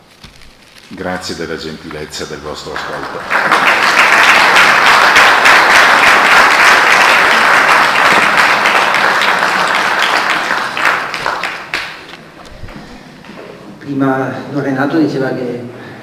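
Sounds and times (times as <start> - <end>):
speech: 0.9 - 4.0, 13.9 - 15.8
applause: 2.2 - 12.1.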